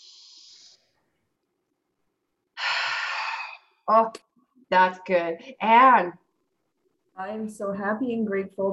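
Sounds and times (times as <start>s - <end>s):
deep breath during a guided breathing exercise: 2.6s - 3.7s
speech: 3.9s - 6.2s, 7.2s - 8.7s.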